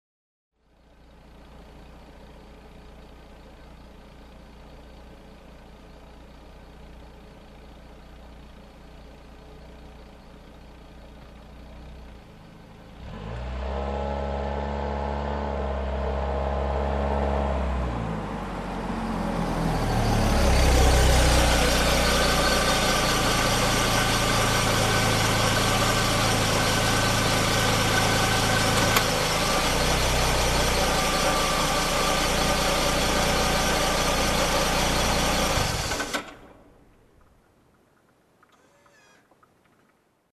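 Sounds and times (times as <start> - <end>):
car approaching and parking: 0.6 - 40.2.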